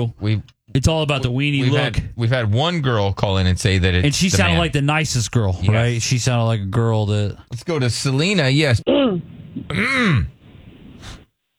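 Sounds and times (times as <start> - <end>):
speech: 0.0 - 10.4
throat clearing: 8.9 - 10.4.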